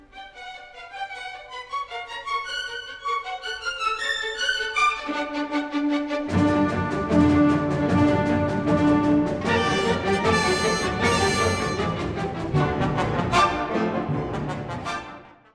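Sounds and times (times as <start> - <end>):
orchestral symphony movement in B-flat major, allegro marcato: 0.0 - 15.5.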